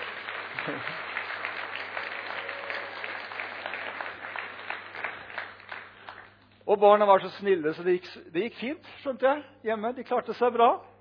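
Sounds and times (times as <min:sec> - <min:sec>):
audience applause: 0:00.0 - 0:06.4
speech: 0:00.7 - 0:01.1, 0:06.7 - 0:10.9.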